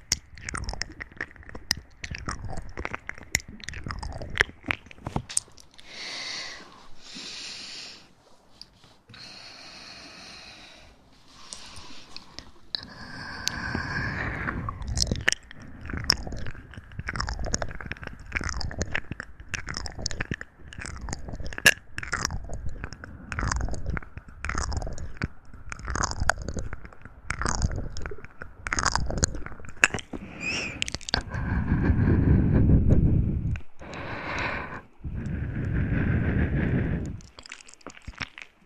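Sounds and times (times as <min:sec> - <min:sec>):
sharp clicks and crunching snaps: 0:00.0 - 0:06.8, 0:11.4 - 0:38.6
deep rumbling rushes: 0:30.5 - 0:33.7, 0:34.8 - 0:37.3.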